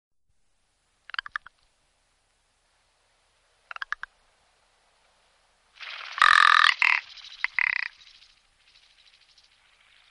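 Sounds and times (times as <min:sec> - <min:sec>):
rock ptarmigan long harsh rattling croak: 0:01.0 - 0:01.6, 0:03.6 - 0:04.1, 0:05.8 - 0:10.0.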